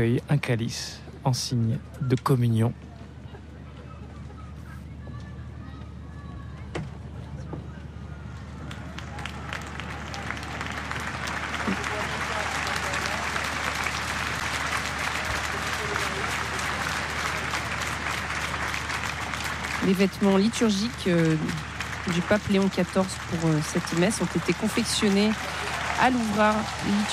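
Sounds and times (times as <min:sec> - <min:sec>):
speech: 0:00.0 - 0:02.9, 0:20.0 - 0:27.1
crowd clapping at a papal mass celebrated by Pope Leo XIV: 0:08.4 - 0:27.1.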